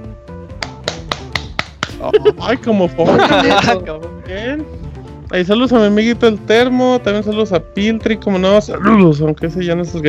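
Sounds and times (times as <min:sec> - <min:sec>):
hand clapping: 0:00.5 - 0:02.1
laughter: 0:02.0 - 0:03.9
speech: 0:02.0 - 0:10.0.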